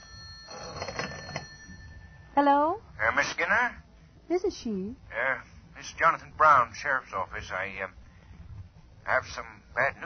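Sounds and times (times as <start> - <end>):
telephone ringing: 0.0 - 2.4
speech: 2.4 - 8.0, 9.0 - 10.0.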